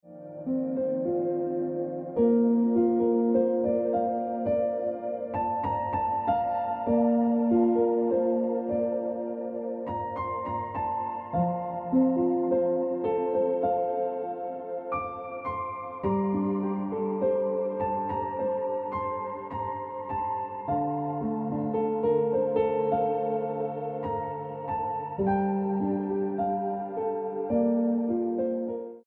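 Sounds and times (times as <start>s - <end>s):
piano music: 0.0s - 29.0s.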